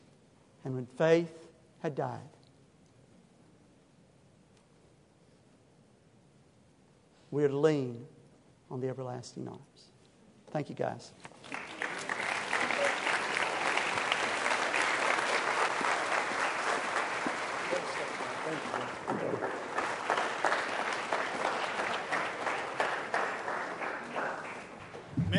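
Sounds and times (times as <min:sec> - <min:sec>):
speech: 0:00.6 - 0:02.4, 0:07.3 - 0:09.9, 0:10.5 - 0:11.3
audience applause: 0:11.4 - 0:25.3.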